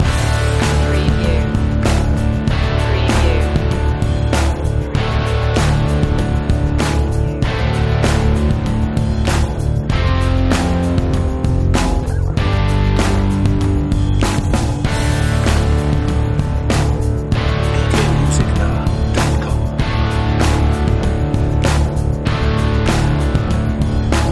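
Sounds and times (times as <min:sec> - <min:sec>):
Texas rock music loop: 0:00.0 - 0:24.3.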